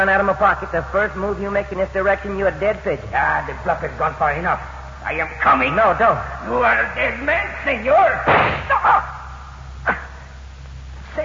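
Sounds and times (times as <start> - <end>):
speech: 0.0 - 9.1
gunshots during an armed standoff: 8.2 - 8.8.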